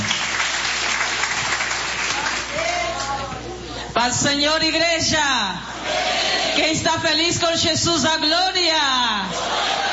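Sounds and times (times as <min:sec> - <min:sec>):
audience clapping: 0:00.0 - 0:03.2
speech: 0:04.0 - 0:09.8.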